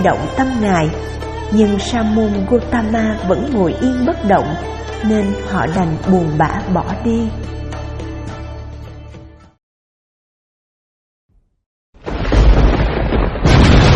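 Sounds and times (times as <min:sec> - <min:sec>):
speech: 0:00.0 - 0:07.6
rumbling thunder: 0:12.0 - 0:13.9.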